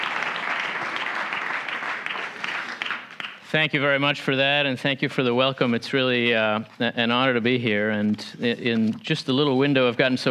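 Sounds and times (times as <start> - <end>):
audience at Mercersburg applauding to welcome a guest speaker: 0.0 - 3.5
speech: 3.5 - 10.2.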